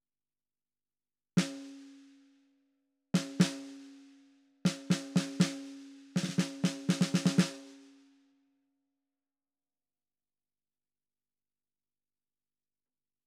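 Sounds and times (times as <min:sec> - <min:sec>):
snare drum: 0:01.4 - 0:02.1, 0:03.2 - 0:04.1, 0:04.7 - 0:07.9.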